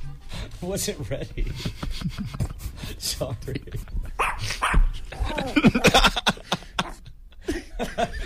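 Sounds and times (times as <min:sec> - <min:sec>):
speech: 0:00.6 - 0:06.3
laughter: 0:01.4 - 0:04.1, 0:05.0 - 0:08.2
shih tzu barking: 0:04.2 - 0:05.3.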